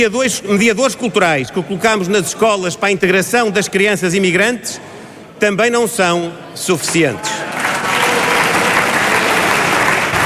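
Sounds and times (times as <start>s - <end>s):
speech: 0.0s - 7.7s
applause from parliament benches: 7.4s - 10.2s.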